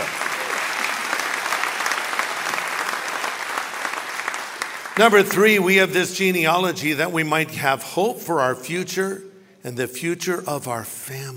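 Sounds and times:
crowd clapping: 0:00.0 - 0:06.2
speech: 0:05.0 - 0:11.3.

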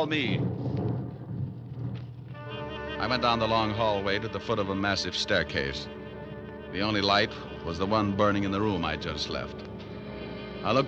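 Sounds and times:
speech: 0:00.0 - 0:00.6, 0:03.0 - 0:06.0, 0:06.7 - 0:09.7, 0:10.6 - 0:10.8
low rumble of thunder: 0:00.0 - 0:02.4.

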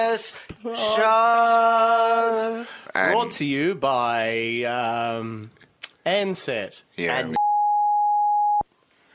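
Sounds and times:
speech: 0:00.1 - 0:07.4
censor beep: 0:07.3 - 0:08.6.

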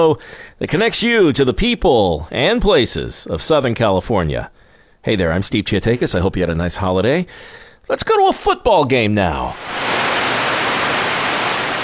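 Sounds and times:
speech: 0:00.0 - 0:09.9
running water from a fountain at a football stadium entrance: 0:09.6 - 0:11.8.

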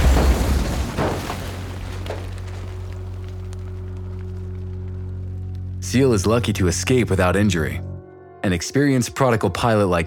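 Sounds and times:
small plane crashing off runway: 0:00.0 - 0:03.3
speech: 0:05.9 - 0:10.0.

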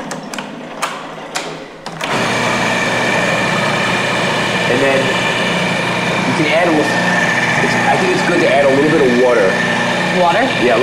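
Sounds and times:
food processor running: 0:01.9 - 0:10.8
speech: 0:07.9 - 0:10.8.

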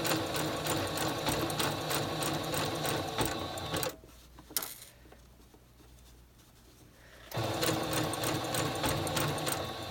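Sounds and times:
sewing machine stitching a blind hem: 0:00.0 - 0:04.0, 0:07.3 - 0:09.8.

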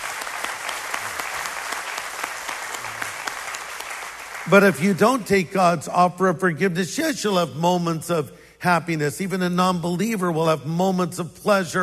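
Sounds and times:
audience clapping: 0:00.0 - 0:05.4
speech: 0:04.5 - 0:11.8.

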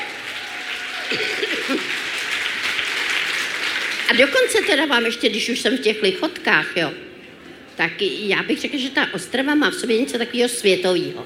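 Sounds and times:
audience clapping: 0:00.0 - 0:05.1
speech: 0:01.1 - 0:01.4, 0:04.1 - 0:07.1, 0:07.8 - 0:11.2.

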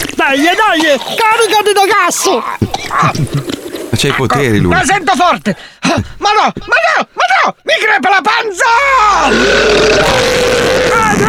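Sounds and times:
speech: 0:00.3 - 0:11.2
loud rumbling burp: 0:09.1 - 0:11.2.

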